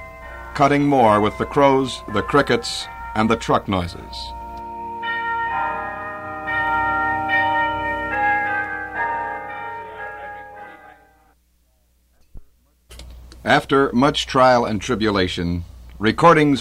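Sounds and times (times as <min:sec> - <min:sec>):
world-famous tubular bells ringing in a tower: 0:00.0 - 0:11.4
speech: 0:00.6 - 0:04.4, 0:13.5 - 0:16.5.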